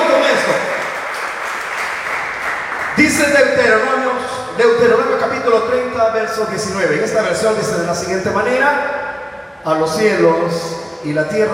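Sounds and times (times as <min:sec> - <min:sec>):
audience clapping: 0:00.0 - 0:03.5
speech: 0:03.1 - 0:09.0, 0:09.6 - 0:11.5.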